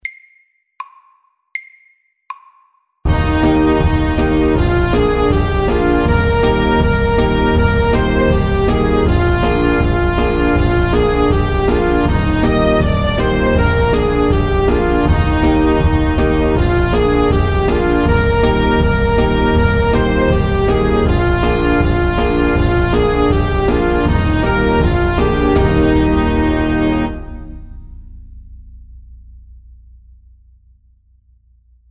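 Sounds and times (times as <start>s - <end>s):
cancan music: 3.1s - 27.8s.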